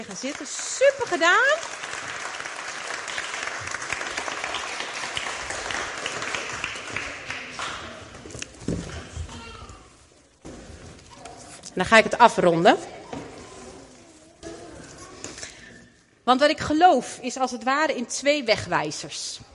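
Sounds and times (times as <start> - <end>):
speech: 0.0 - 2.2, 11.8 - 13.0, 16.3 - 19.5
audience applause: 0.0 - 8.1.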